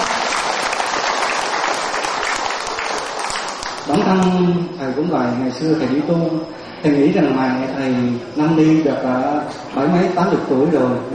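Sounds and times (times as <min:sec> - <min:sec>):
audience applause: 0:00.0 - 0:04.1
speech: 0:04.1 - 0:11.1.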